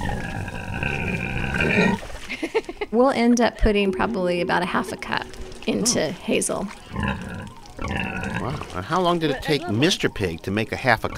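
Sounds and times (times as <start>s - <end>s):
female pig grunting while her back is scratched: 0.0s - 2.1s, 6.9s - 8.9s
speech: 3.0s - 7.3s, 8.8s - 11.1s.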